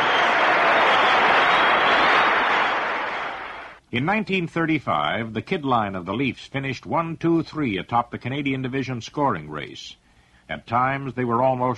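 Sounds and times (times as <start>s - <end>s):
crowd roaring and cheering at a hockey game: 0.0s - 3.8s
speech: 3.9s - 11.7s.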